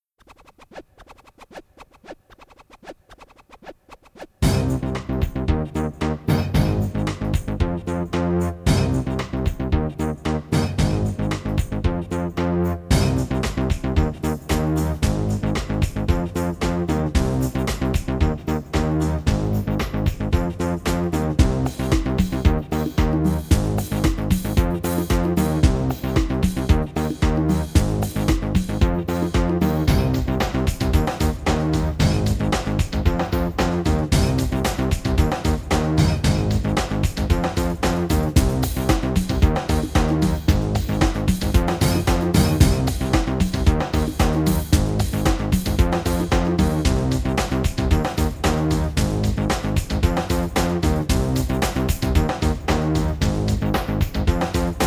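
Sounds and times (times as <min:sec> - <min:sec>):
backing music: 0:03.8 - 0:54.8.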